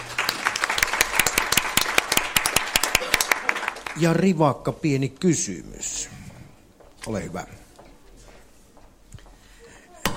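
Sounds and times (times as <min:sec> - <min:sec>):
audience applause: 0:00.0 - 0:04.4
speech: 0:04.0 - 0:06.2, 0:07.0 - 0:07.6.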